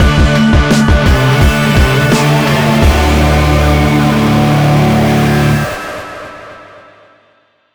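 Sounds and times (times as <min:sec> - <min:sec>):
mission complete music sting: 0:01.1 - 0:06.9.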